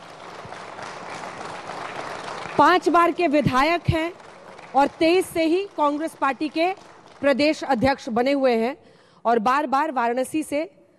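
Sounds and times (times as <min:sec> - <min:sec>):
studio audience clapping: 0:00.0 - 0:08.2
speech: 0:02.6 - 0:10.8.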